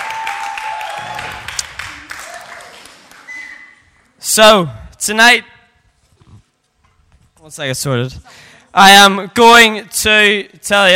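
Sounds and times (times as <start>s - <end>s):
audience applause: 0.0s - 3.5s
high whistle-like tones: 3.2s - 3.8s
speech: 4.4s - 5.5s, 7.5s - 10.9s.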